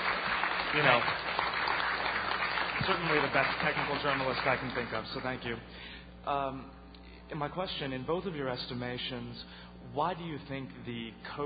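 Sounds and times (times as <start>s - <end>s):
audience applause at a technology policy discussion: 0.0s - 5.3s
speech: 0.7s - 1.2s, 2.8s - 11.4s.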